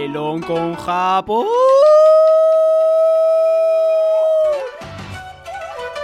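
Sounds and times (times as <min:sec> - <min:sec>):
speech: 0:00.1 - 0:02.0
person imitating a howl: 0:00.9 - 0:04.8.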